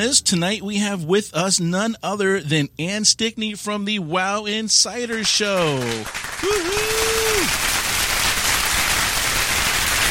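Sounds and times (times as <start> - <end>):
speech: 0.0 - 7.7
applause sound effect: 5.0 - 10.1
person cheering: 5.6 - 7.6.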